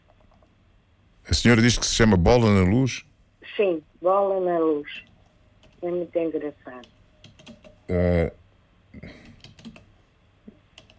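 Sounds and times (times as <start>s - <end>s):
speech: 1.3s - 5.1s, 5.8s - 7.0s, 7.9s - 8.4s, 9.0s - 9.2s
computer keyboard typing a search: 5.6s - 5.8s, 6.8s - 7.8s, 9.1s - 9.9s, 10.7s - 10.9s.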